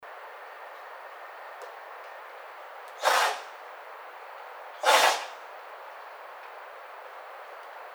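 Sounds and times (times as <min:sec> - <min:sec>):
White-tailed deer: 0:02.9 - 0:03.6, 0:04.8 - 0:05.5.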